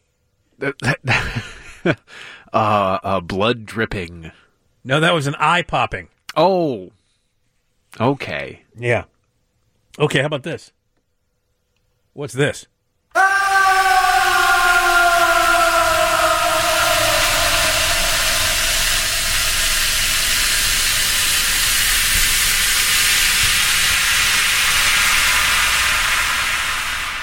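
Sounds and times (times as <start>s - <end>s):
speech: 0.6s - 7.0s, 7.9s - 9.1s, 10.0s - 10.8s, 12.2s - 13.2s
man screaming: 13.1s - 20.6s
acid bath sizzling: 13.2s - 27.2s.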